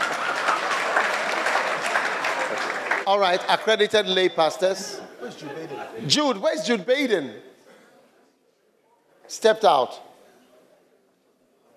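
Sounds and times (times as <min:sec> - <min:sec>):
audience clapping: 0:00.0 - 0:04.0
speech: 0:03.1 - 0:07.5, 0:09.3 - 0:10.1.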